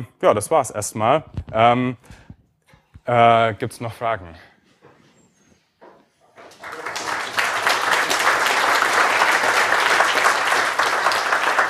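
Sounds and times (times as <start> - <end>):
speech: 0.0 - 2.2, 3.1 - 4.5
audience applause: 6.4 - 11.6.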